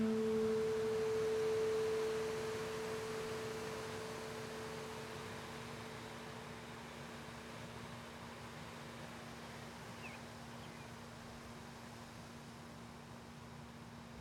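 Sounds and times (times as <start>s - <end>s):
guitar playing: 0.0s - 5.4s.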